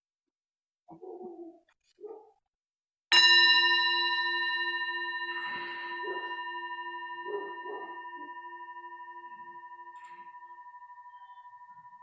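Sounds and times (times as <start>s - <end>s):
meditation bell ringing: 3.1s - 12.0s.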